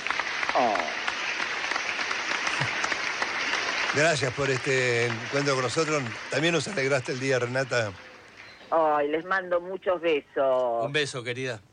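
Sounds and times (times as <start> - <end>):
applause: 0.0 - 8.6
speech: 0.6 - 0.9, 3.9 - 8.0, 8.7 - 11.7.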